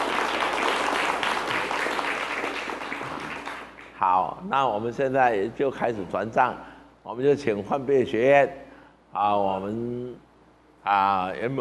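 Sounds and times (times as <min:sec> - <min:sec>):
audience applause: 0:00.0 - 0:03.9
speech: 0:04.2 - 0:08.6, 0:09.2 - 0:10.2, 0:10.8 - 0:11.5.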